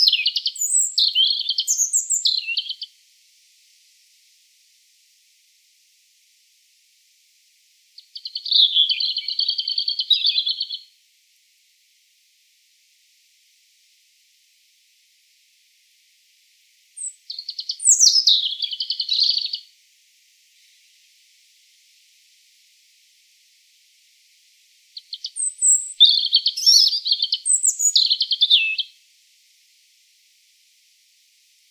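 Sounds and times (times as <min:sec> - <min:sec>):
European robin singing: 0:00.0 - 0:03.0, 0:08.0 - 0:10.9, 0:17.0 - 0:19.7, 0:25.0 - 0:28.9.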